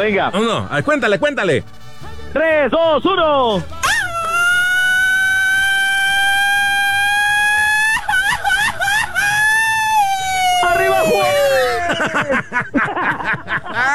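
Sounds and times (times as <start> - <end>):
laughter: 0.0 - 1.3, 3.8 - 13.9
speech: 0.0 - 3.8, 11.9 - 13.9
person holding a long sustained shout: 3.7 - 7.5, 9.6 - 12.1.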